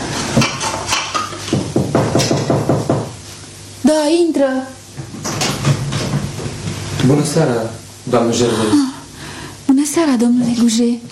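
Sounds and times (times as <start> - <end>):
washing dishes, clattering pots and plates: 0.2 - 3.1, 5.0 - 6.6
speech: 4.1 - 4.8, 7.0 - 8.9, 9.9 - 11.1.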